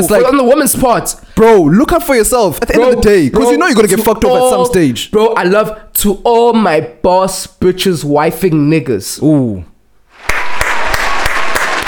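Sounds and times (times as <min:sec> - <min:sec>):
speech: 0:00.0 - 0:10.4
round of applause: 0:10.2 - 0:11.8.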